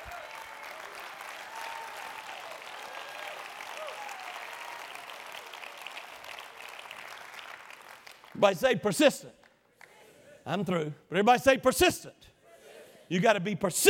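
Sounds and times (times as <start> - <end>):
audience clapping hands: 0.0 - 10.0
speech: 8.4 - 9.4, 10.4 - 12.3, 13.1 - 13.8.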